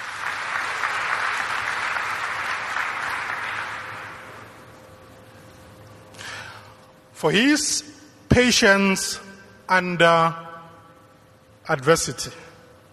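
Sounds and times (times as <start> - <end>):
audience applause: 0.0 - 4.4
speech: 7.2 - 10.4, 11.7 - 12.4.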